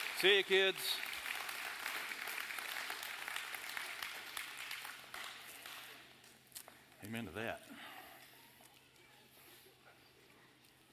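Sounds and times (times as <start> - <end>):
audience applauding for the kids: 0.0 - 5.8
speech: 0.2 - 1.1, 7.0 - 7.9.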